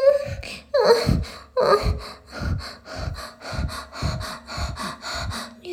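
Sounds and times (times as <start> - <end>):
masturbation sounds: 0.2 - 5.6.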